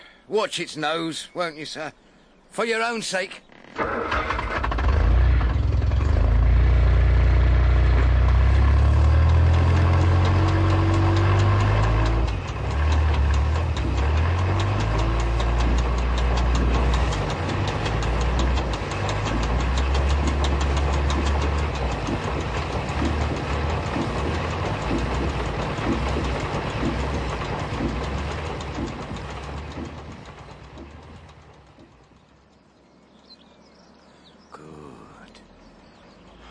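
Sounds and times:
speech: 0.3s - 4.3s
engine running and idling with a deep throbbing rumble: 3.8s - 32.9s.

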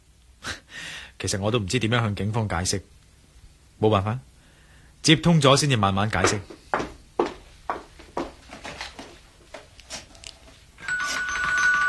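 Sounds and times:
speech: 1.2s - 3.0s, 3.8s - 4.3s, 5.0s - 6.6s
doorbell ringing: 10.8s - 11.8s.

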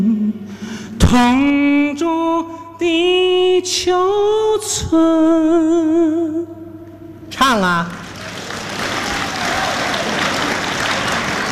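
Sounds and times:
speech: 1.1s - 6.6s, 7.4s - 8.0s
audience applause: 8.0s - 11.5s.

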